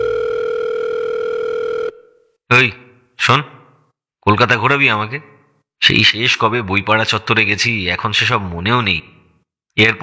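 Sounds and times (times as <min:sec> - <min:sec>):
telephone call tone: 0:00.0 - 0:02.3
speech: 0:02.5 - 0:03.6, 0:04.2 - 0:09.2, 0:09.8 - 0:10.0.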